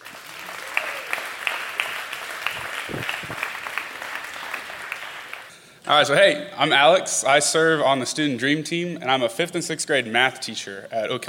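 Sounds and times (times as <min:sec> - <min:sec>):
audience clapping at a church gathering welcoming a guest: 0:00.0 - 0:05.6
speech: 0:05.9 - 0:11.2.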